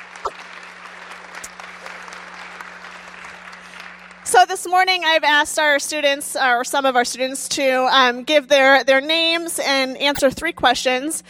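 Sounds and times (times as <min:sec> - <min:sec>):
audience applause: 0:00.0 - 0:04.3
speech: 0:04.3 - 0:11.2.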